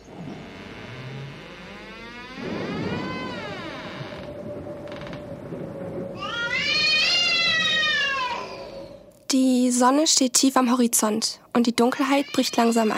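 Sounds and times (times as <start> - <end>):
steady low rumble: 0.0 - 9.2
cat meowing: 6.2 - 8.7, 12.0 - 12.9
speech: 9.3 - 12.9.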